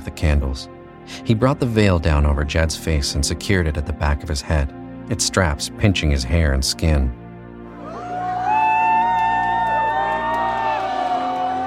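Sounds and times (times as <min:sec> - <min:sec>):
speech: 0:00.1 - 0:07.2
audience applause of hundreds of hands: 0:07.9 - 0:11.6.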